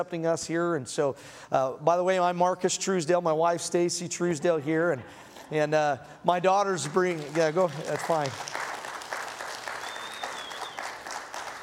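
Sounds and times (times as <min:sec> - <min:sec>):
speech: 0:00.0 - 0:08.6
audience clapping: 0:06.6 - 0:11.6.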